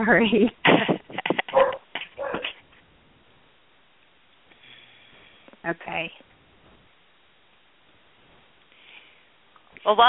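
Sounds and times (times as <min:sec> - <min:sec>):
speech: 0:00.0 - 0:00.9, 0:09.9 - 0:10.0
dogs barking: 0:01.4 - 0:02.6.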